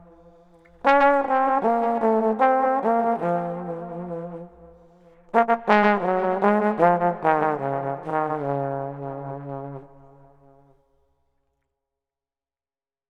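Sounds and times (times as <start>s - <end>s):
street trombone melody: 0.0s - 10.6s.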